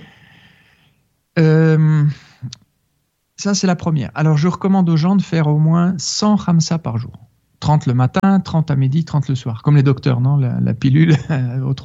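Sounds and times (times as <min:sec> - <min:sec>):
airy inhale: 0:00.0 - 0:01.1
voiced exhalation in a breathing exercise: 0:00.0 - 0:01.1
speech: 0:03.4 - 0:11.8.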